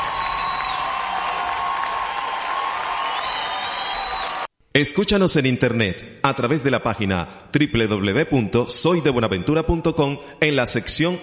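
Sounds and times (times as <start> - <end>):
Havana audience applauding and cheering: 0.0 - 4.5
speech: 4.7 - 11.2.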